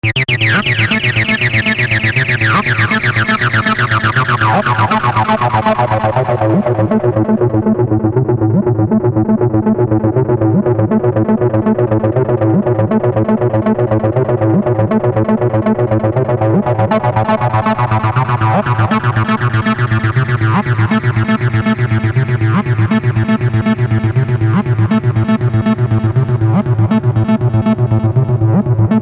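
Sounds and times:
303 acid bass synth: 0.0 - 29.0.

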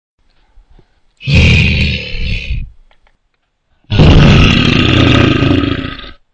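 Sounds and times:
bear roaring: 1.2 - 2.7, 3.9 - 6.2.

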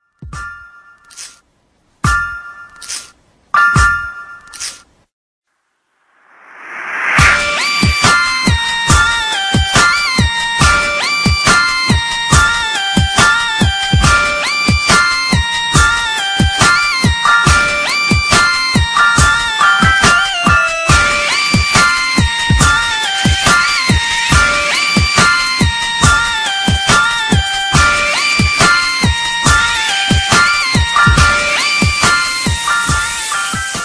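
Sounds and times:
dubstep music: 6.5 - 33.8.

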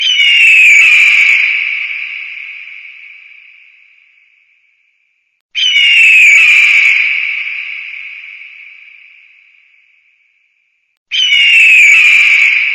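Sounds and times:
eagle scream: 0.0 - 1.5, 5.6 - 7.2, 11.1 - 12.7.

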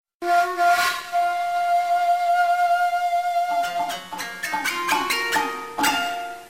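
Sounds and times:
cute Japanese music: 0.2 - 6.4.

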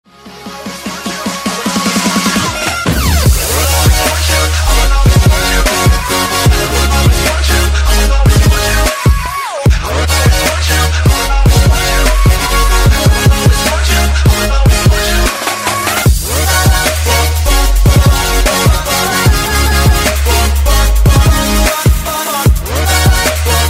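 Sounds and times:
remix music: 0.0 - 23.6.

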